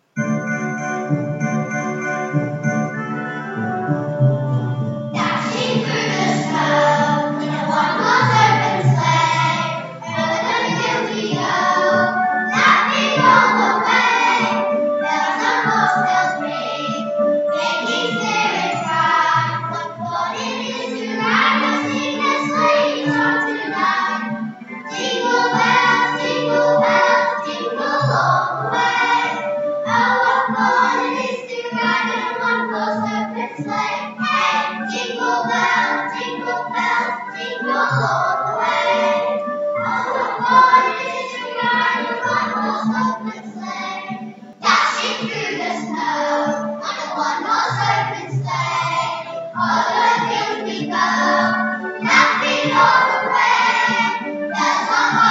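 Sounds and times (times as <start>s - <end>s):
Christmas song: 0.0s - 55.2s.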